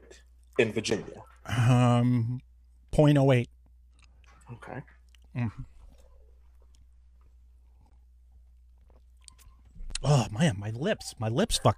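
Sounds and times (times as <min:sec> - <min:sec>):
speech: 0:00.6 - 0:03.6, 0:04.5 - 0:05.7, 0:10.0 - 0:11.7
person chewing food coated in a spicy green sauce: 0:03.8 - 0:10.0.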